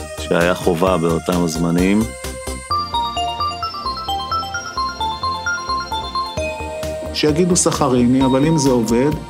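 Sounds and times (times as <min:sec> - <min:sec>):
speech: 0:00.3 - 0:02.2, 0:07.2 - 0:09.2
80s-style bell in a song: 0:02.7 - 0:09.2.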